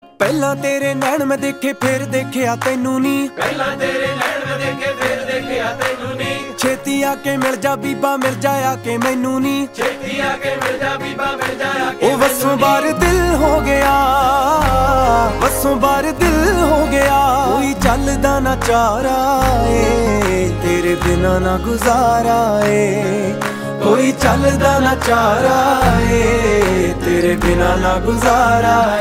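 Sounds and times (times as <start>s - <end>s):
Punjabi music: 0.0s - 28.9s.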